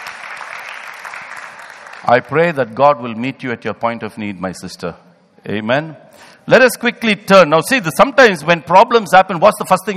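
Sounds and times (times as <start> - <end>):
audience clapping: 0.0 - 2.6
speech: 2.0 - 9.9.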